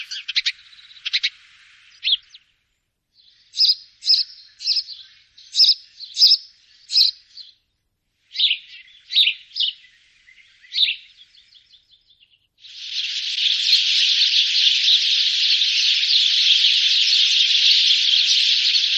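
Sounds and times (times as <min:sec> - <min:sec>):
house sparrow chirping: 0:00.0 - 0:02.6, 0:03.2 - 0:07.7, 0:08.3 - 0:18.9.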